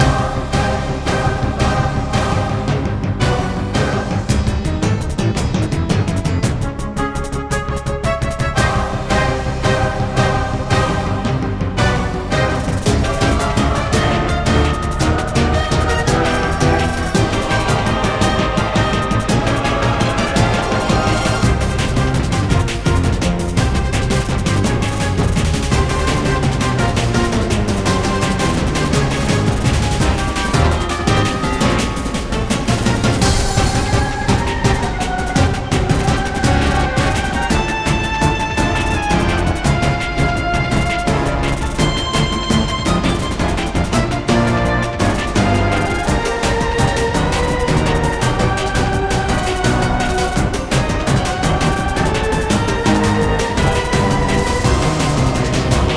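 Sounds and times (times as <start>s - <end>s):
final boss second phase combat music loop: 0.0s - 55.9s.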